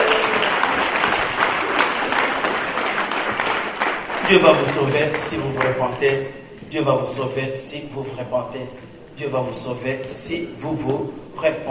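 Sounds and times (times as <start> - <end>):
crowd applauding: 0.0 - 6.5
speech: 4.3 - 11.6.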